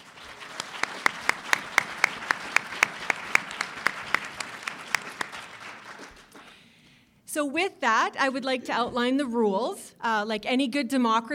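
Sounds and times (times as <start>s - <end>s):
audience applause for the candidates: 0.0s - 6.6s
speech: 7.4s - 11.3s.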